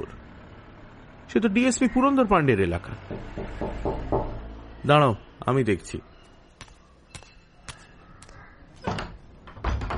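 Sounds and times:
speech: 1.3 - 4.1, 4.8 - 6.1
door opening: 8.7 - 9.9.

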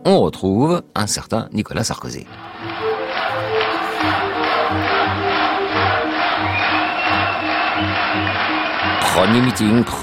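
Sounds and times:
speech: 0.0 - 2.8, 4.0 - 4.9, 9.2 - 10.0
large crowd of supporters cheering at Jacques Chaban-Delmas campaign rally in Boulogne-Billancourt: 2.3 - 10.0.

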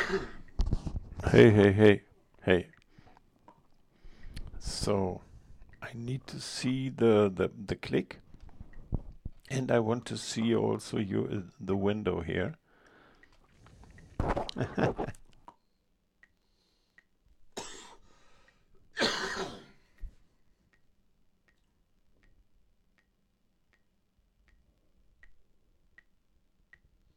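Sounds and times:
person coughing: 0.0 - 0.5, 17.6 - 18.0, 19.0 - 19.8
speech: 0.1 - 0.4, 1.2 - 2.7, 4.6 - 8.2, 8.9 - 12.6, 14.2 - 15.2
quiet ticking: 0.4 - 19.2, 19.8 - 27.1.

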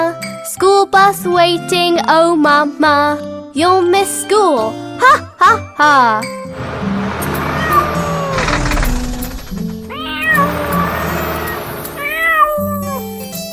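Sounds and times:
speech: 1.0 - 6.4
steady low tonal hum: 6.5 - 12.7
kitten meowing: 12.0 - 13.1.

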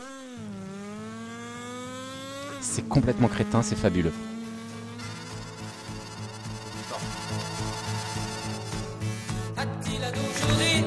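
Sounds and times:
car engine humming, sweeping across the stereo field: 0.0 - 10.8
speech: 2.6 - 4.3.

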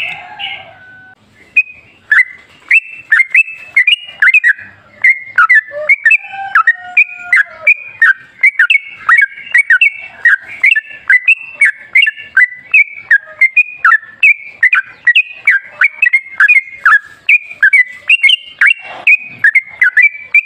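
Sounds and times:
yellow-vented bulbuls chirping: 0.0 - 20.4.

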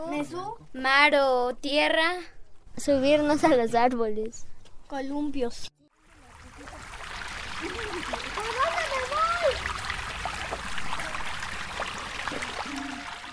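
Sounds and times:
speech: 0.0 - 5.7
river water trickling: 5.9 - 13.3.

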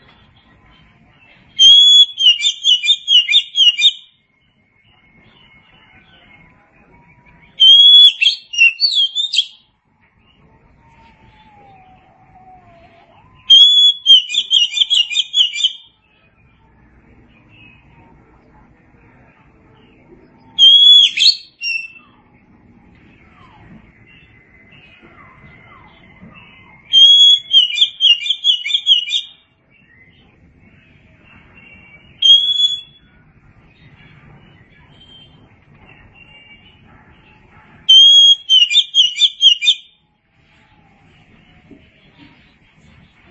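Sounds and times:
Oriental magpie-robin song of whistles and warbles: 1.5 - 4.2, 7.4 - 9.7, 10.9 - 16.0, 20.4 - 22.2, 23.2 - 30.2, 31.5 - 33.1, 37.8 - 40.0.

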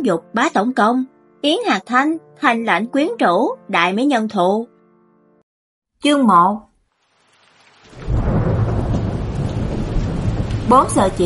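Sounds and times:
speech: 0.0 - 4.7, 6.0 - 6.7, 10.7 - 11.2
heavy rain lashing against a café's floor-to-ceiling window: 6.9 - 11.2
thunder rumbling: 7.8 - 11.2.

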